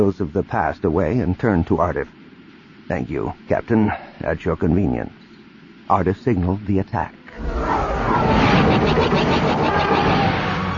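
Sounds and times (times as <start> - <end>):
speech: 0.0 - 2.2, 2.9 - 5.2, 5.9 - 7.5
Preybird-class starfighters in tight formation roaring past: 7.3 - 10.7
low-power blaster fire: 7.4 - 10.7.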